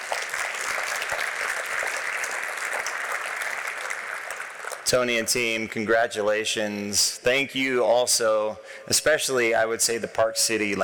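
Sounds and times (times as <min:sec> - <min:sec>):
audience applause: 0:00.0 - 0:04.9
speech: 0:04.9 - 0:10.8.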